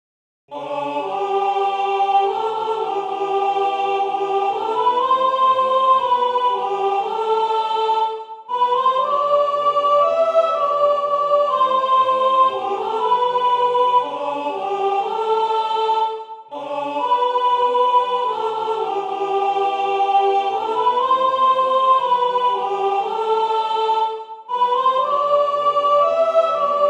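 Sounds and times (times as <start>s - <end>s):
soprano singing a chorale: 0.5s - 26.8s.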